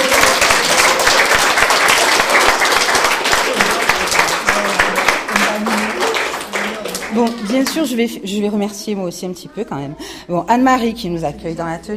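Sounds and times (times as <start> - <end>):
audience applause: 0.0 - 7.9
faint voices murmuring: 0.0 - 10.5
speech: 7.5 - 11.9.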